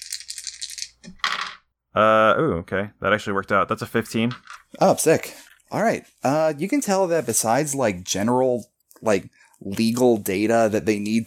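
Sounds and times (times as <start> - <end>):
dice being rolled: 0.0 - 1.6
speech: 2.0 - 11.2.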